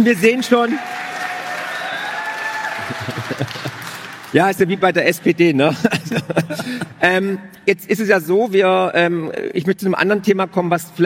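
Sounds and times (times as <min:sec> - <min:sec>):
speech: 0:00.0 - 0:01.0, 0:02.9 - 0:11.0
audience applause: 0:00.0 - 0:04.7.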